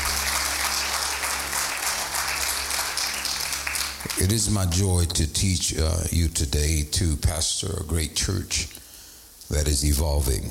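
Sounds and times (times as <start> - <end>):
audience clapping: 0.0 - 4.8
low steady hum: 0.0 - 10.5
speech: 4.2 - 8.8, 9.5 - 10.5.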